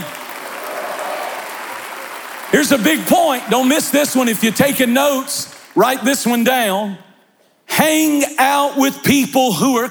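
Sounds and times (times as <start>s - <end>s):
crowd clapping: 0.0s - 6.7s
speech: 2.5s - 7.0s, 7.7s - 9.9s.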